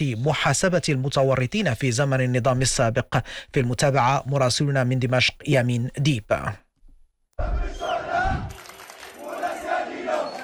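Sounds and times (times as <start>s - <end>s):
speech: 0.0s - 6.6s, 7.4s - 8.0s
protest crowd chanting: 7.4s - 10.4s.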